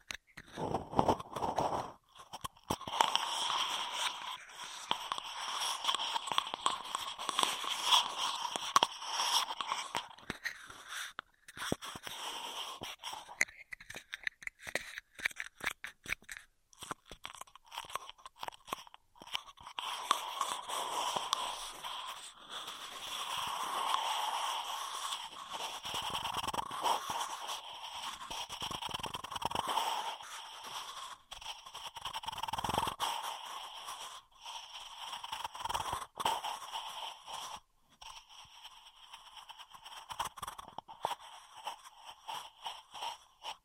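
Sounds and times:
straw crackling: 0.0s - 43.6s.

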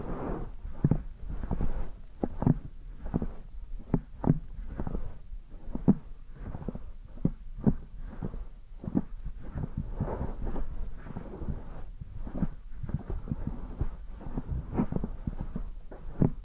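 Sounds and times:
soft low ear massage rubbing against the microphone: 0.0s - 16.4s
muffled thumps against the microphone: 0.7s - 16.4s.

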